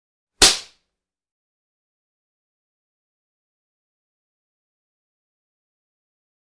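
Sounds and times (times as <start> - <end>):
slap on flesh of a face: 0.4 - 0.8.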